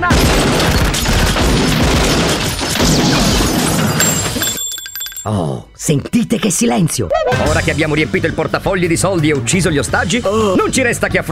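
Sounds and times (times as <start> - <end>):
gunfire in a shootout: 0.1 - 3.6
speech: 5.3 - 11.2.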